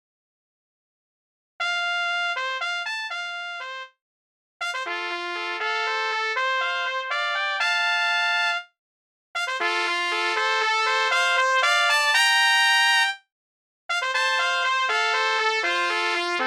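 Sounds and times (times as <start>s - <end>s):
three trumpets playing a duet: 1.6s - 3.9s, 4.6s - 8.6s, 9.4s - 13.2s, 13.9s - 16.4s.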